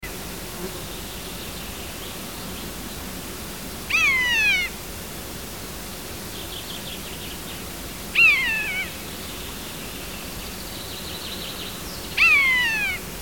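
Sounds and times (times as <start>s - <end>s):
common buzzard mewing call: 3.9s - 4.8s, 8.1s - 9.0s, 12.2s - 13.1s.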